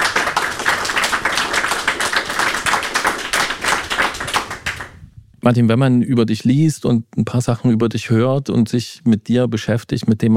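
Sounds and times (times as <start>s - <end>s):
audience applause: 0.0s - 5.0s
speech: 5.5s - 10.3s.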